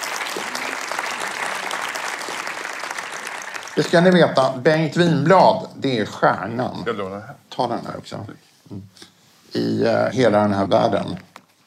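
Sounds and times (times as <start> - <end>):
audience applause: 0.0 - 4.4
speech: 3.8 - 11.6.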